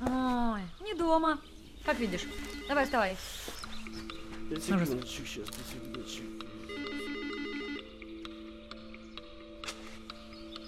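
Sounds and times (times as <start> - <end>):
speech: 1.0 - 6.5
telephone ringing: 6.6 - 8.0.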